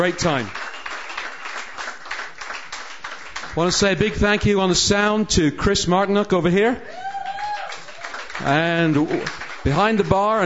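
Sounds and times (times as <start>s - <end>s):
speech: 0.0s - 0.6s, 3.6s - 7.1s, 8.4s - 10.4s
audience applause at end of a songwriter stage show: 0.0s - 3.8s, 7.0s - 10.4s.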